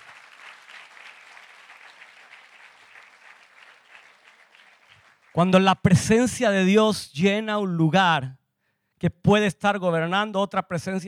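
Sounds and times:
audience applause: 0.0s - 5.4s
speech: 5.4s - 8.4s, 9.0s - 11.0s.

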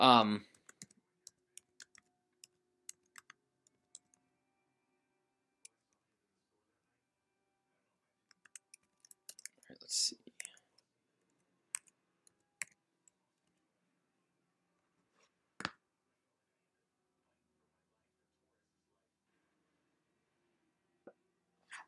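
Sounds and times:
person speaking: 0.0s - 2.0s, 9.1s - 10.7s
typing on a computer keyboard: 0.5s - 4.1s, 8.3s - 9.6s, 11.8s - 12.8s.

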